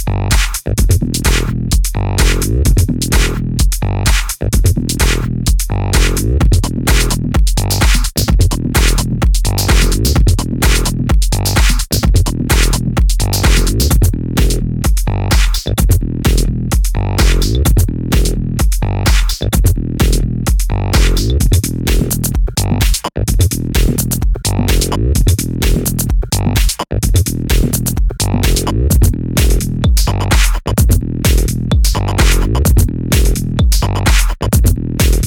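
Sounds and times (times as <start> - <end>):
tech house music: 0.0 - 35.2.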